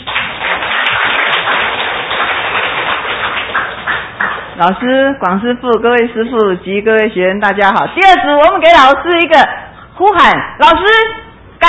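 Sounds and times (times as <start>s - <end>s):
audience applause: 0.0s - 4.6s
speech: 4.6s - 11.6s.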